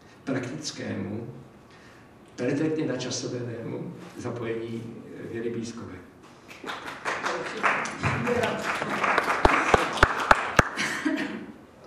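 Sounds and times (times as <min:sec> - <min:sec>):
speech: 0:00.3 - 0:01.5, 0:02.4 - 0:06.9
applause: 0:06.5 - 0:10.8.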